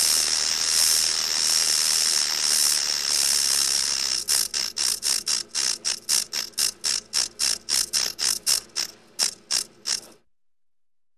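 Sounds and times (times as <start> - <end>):
rattlesnake rattle buzzing: 0.0 - 10.2.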